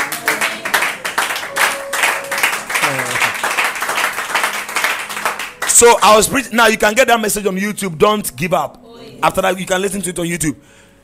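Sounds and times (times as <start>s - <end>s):
crowd applauding: 0.0s - 6.3s
speech: 5.8s - 10.9s.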